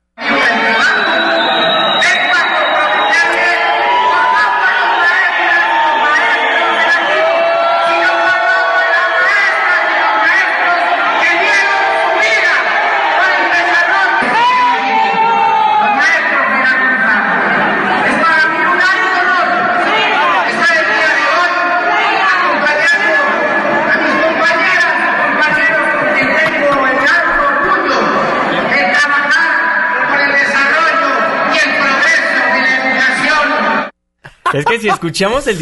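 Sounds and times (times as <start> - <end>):
crowd of teachers booing a politician's speech: 0.2 - 29.1, 30.0 - 35.6
laughter: 25.2 - 28.7, 34.2 - 35.6
individual jeers and shouts: 34.3 - 35.6
speech: 34.6 - 35.6.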